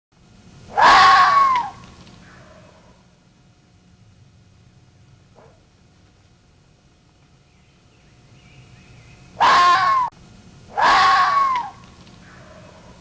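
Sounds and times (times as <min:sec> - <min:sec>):
low hum: 0:00.2 - 0:12.9
fox screams: 0:00.7 - 0:03.0, 0:09.4 - 0:10.1, 0:10.7 - 0:12.9.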